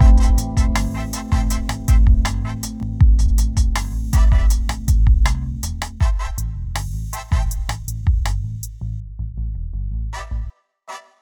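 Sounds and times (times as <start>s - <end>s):
liquid RnB loop: 0.0s - 6.4s, 7.1s - 8.5s.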